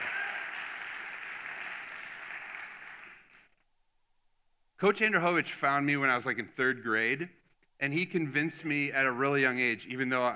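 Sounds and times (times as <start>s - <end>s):
audience applause: 0.0s - 3.5s
speech: 4.8s - 10.3s.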